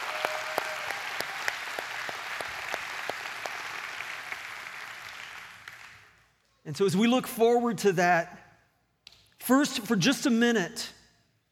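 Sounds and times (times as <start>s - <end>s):
church congregation clapping: 0.0s - 6.3s
speech: 6.7s - 8.4s, 9.5s - 11.0s.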